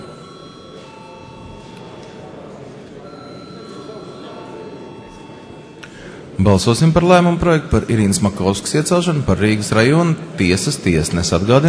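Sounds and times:
parliament chamber bell ringing for a vote: 0.0s - 5.8s
speech: 6.4s - 11.6s.

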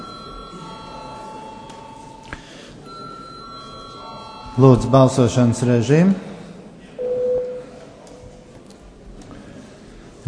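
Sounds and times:
parliament bell ringing for a vote: 0.0s - 5.7s
speech: 4.6s - 6.3s.

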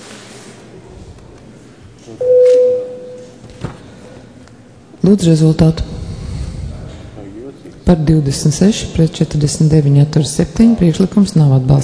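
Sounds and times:
speech: 2.1s - 2.9s, 5.0s - 5.9s, 7.9s - 11.8s
parliament voting bell ringing: 2.2s - 3.4s.

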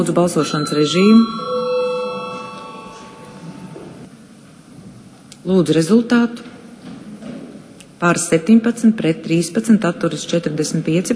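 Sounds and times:
speech: 0.0s - 1.5s, 5.5s - 6.5s, 8.0s - 11.1s
parliament chamber bell ringing: 0.0s - 4.1s.

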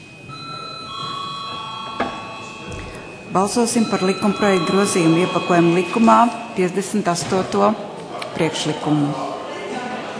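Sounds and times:
parliamentary bell before a vote: 0.3s - 7.4s
speech: 3.3s - 9.3s.

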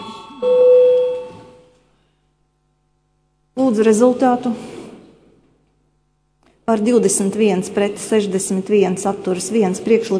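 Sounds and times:
bell rung before parliamentary vote: 0.0s - 1.8s
speech: 0.4s - 0.7s, 3.7s - 4.7s, 6.7s - 10.1s.

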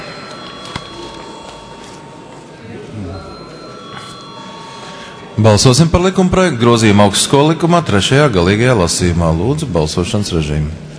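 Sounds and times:
parliament chamber voting bell ringing: 0.0s - 9.0s
low murmur: 0.0s - 10.9s
speech: 5.4s - 10.9s.

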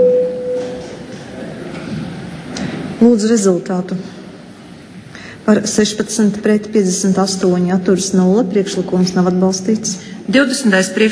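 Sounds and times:
voting signal tone in the Latvian parliament (Saeima) chamber: 0.0s - 0.8s
low hum: 0.0s - 11.1s
speech: 3.0s - 4.2s, 5.5s - 11.1s.

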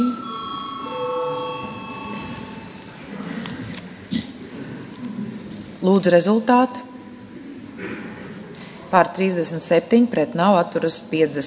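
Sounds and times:
parliamentary bell before a vote: 0.0s - 3.0s
speech: 5.8s - 6.9s, 8.9s - 11.4s.

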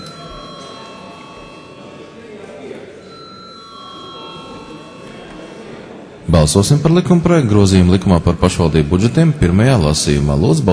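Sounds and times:
parliament bell rung before a vote on a municipal budgets bill: 0.0s - 8.1s
constant noise: 0.0s - 10.7s
speech: 6.3s - 10.7s.

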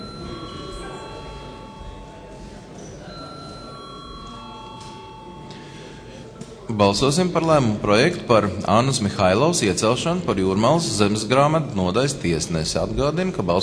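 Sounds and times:
parliament chamber bell rung before vote: 0.0s - 6.3s
low murmur: 0.0s - 13.6s
speech: 6.7s - 13.6s.

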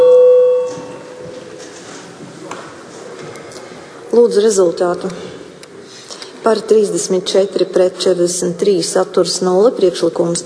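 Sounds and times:
parliament voting bell electronic tone: 0.0s - 1.6s
speech: 4.2s - 5.3s, 6.4s - 10.4s.

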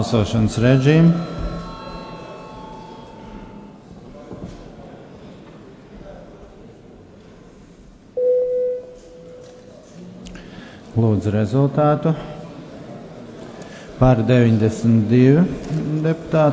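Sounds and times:
speech: 0.0s - 1.4s, 11.0s - 12.3s, 14.0s - 16.5s
parliament bell electronic tone before a vote: 0.0s - 3.8s, 8.2s - 9.4s
murmur of voices: 0.0s - 8.2s, 9.2s - 16.5s.

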